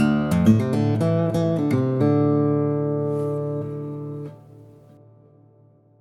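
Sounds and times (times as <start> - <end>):
guitar riff in DADGAD tuning: 0.0 - 5.9.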